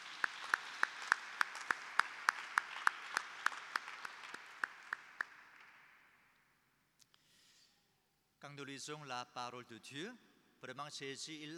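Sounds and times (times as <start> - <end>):
church audience applause: 0.0 - 5.9
speech: 8.5 - 11.5.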